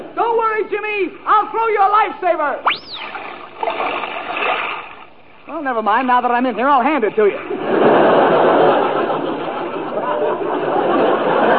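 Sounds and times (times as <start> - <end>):
speech: 0.6 - 4.6, 5.5 - 8.6
water churning and bubbling: 2.7 - 8.5
laughter: 7.5 - 11.5.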